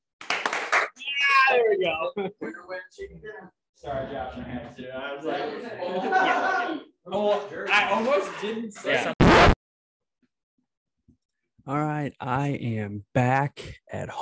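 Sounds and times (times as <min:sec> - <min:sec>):
group clapping hands: 0:00.2 - 0:01.1
speech: 0:01.5 - 0:09.2, 0:11.7 - 0:14.2
laughter: 0:01.6 - 0:02.9, 0:05.4 - 0:09.2.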